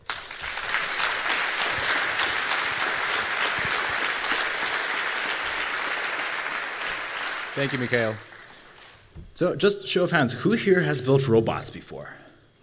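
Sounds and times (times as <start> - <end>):
audience applause at a tech talk on building delivery robots: 0.0 - 9.1
speech: 7.6 - 8.3, 9.4 - 12.3.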